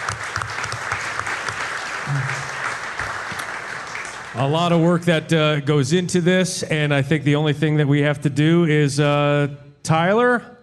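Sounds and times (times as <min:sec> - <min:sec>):
round of applause: 0:00.0 - 0:04.5
speech: 0:04.4 - 0:10.6.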